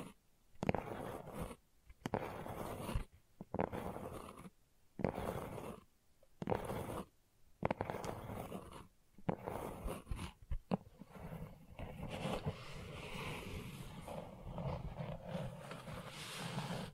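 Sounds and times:
gentle scratching: 0:00.0 - 0:16.9.

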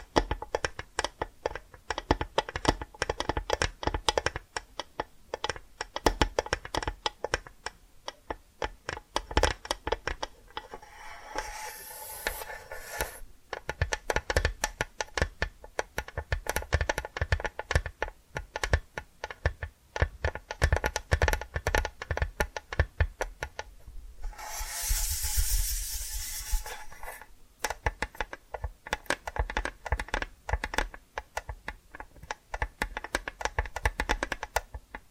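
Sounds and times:
rapid clicks and taps: 0:00.0 - 0:10.8, 0:13.5 - 0:23.7, 0:27.6 - 0:35.0
bright hissing scratch: 0:10.6 - 0:13.2, 0:24.2 - 0:27.3.

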